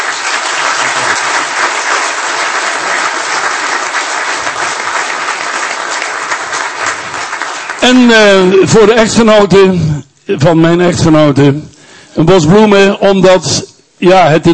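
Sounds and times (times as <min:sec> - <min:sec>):
audience applause: 0:00.0 - 0:08.0
speech: 0:07.8 - 0:14.5.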